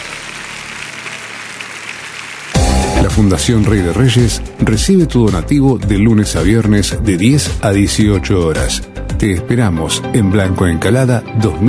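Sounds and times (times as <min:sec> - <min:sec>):
audience applause: 0:00.0 - 0:04.7
speech: 0:03.0 - 0:11.6.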